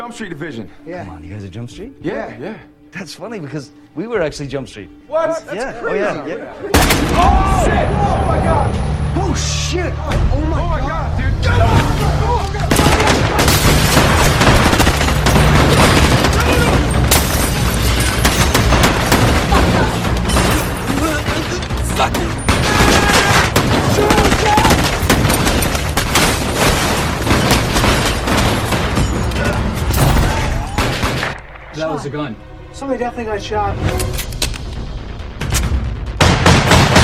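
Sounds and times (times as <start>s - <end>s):
speech: 0.1s - 12.4s, 32.0s - 34.2s
people shouting: 6.7s - 9.0s, 11.3s - 13.8s, 16.0s - 17.0s, 19.2s - 25.4s, 29.2s - 31.2s
rapid gunshots and heavy booms in a film scene from 21 Jump Street: 12.7s - 29.2s, 36.1s - 37.0s.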